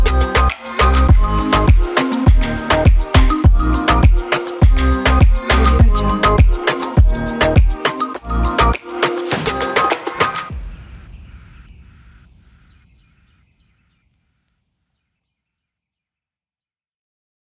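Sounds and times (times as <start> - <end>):
tropical house dance pop: 0.0 - 10.5.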